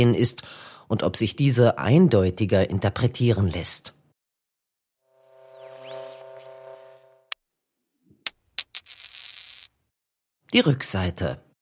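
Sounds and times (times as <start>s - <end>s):
speech: 0.0s - 4.0s, 10.5s - 11.5s
coin being turned over on a hard surface: 7.8s - 9.8s.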